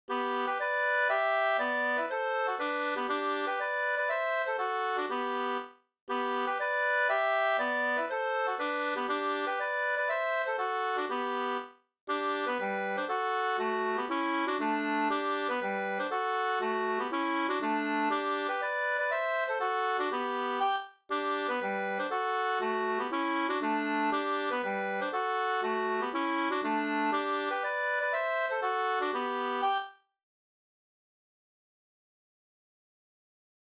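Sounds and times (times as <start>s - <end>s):
two-part polska folk dance tune: 0.1s - 29.9s.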